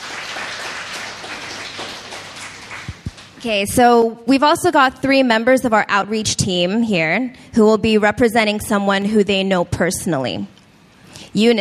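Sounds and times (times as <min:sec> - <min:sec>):
audience clapping: 0:00.0 - 0:03.4
speech: 0:03.4 - 0:10.5, 0:11.3 - 0:11.6.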